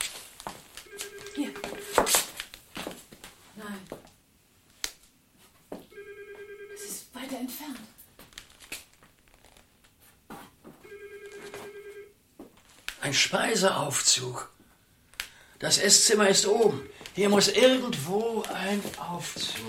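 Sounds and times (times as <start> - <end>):
rustling and crinkling: 0.0 - 4.1, 7.8 - 13.0, 17.0 - 19.6
muffled telephone ringing: 0.8 - 2.3, 5.9 - 7.1, 10.8 - 12.2, 15.9 - 17.4
speech: 13.1 - 14.5, 15.6 - 19.6.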